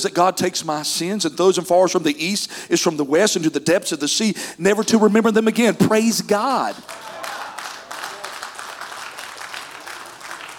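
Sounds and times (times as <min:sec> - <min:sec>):
speech: 0:00.0 - 0:07.0
audience clapping: 0:06.5 - 0:10.5.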